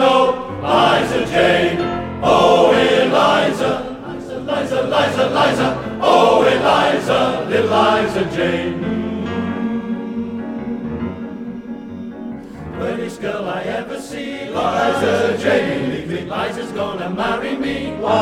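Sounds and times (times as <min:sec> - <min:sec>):
male voice choir singing: 0:00.0 - 0:18.1.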